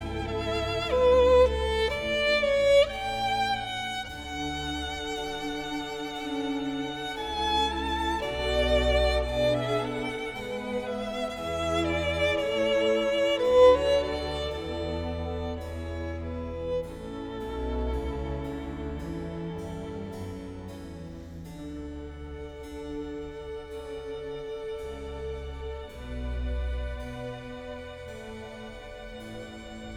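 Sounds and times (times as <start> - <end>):
chamber orchestra playing: 0.0 - 29.9.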